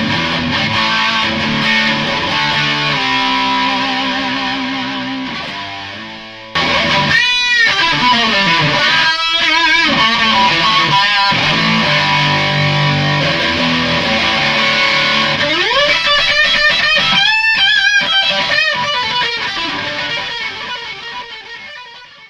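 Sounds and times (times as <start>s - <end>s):
guitar amp with pedals: 0.0s - 22.2s.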